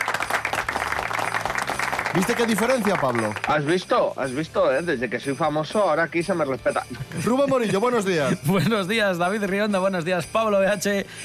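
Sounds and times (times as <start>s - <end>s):
audience applause: 0.0s - 3.5s
low music: 0.0s - 11.2s
speech: 2.1s - 11.2s
laughter: 6.9s - 8.9s.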